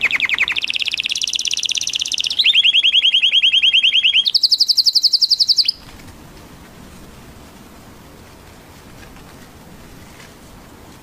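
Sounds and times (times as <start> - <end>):
orange canary singing rapid trills: 0.0 - 5.9
faint low hiss: 0.0 - 11.0.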